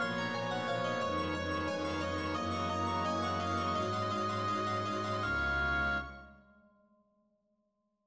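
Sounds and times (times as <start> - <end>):
bass: 0.0 - 6.3.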